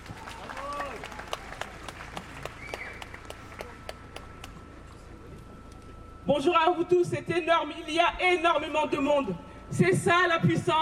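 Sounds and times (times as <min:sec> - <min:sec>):
audience applause: 0:00.0 - 0:04.0
speech: 0:06.3 - 0:10.8.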